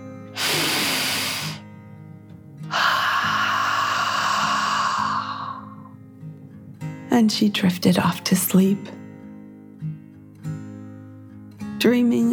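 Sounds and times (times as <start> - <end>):
deep breath in and out: 0.3 - 1.7, 2.7 - 6.0
speech: 7.2 - 9.0, 11.8 - 12.3.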